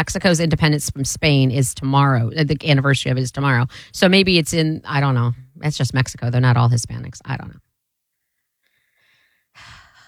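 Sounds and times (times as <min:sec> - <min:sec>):
speech: 0:00.0 - 0:07.6
heavy breathing: 0:03.7 - 0:04.0, 0:08.2 - 0:10.0.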